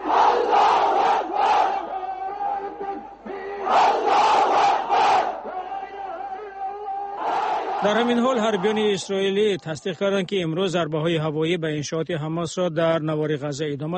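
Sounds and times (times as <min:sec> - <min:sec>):
crowd chanting protest slogans: 0:00.0 - 0:09.0
speech: 0:07.8 - 0:13.9.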